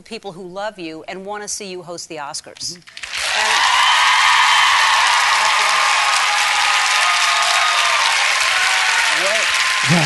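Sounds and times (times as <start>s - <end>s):
speech: 0.0s - 3.5s
loud audience applause: 2.9s - 10.0s.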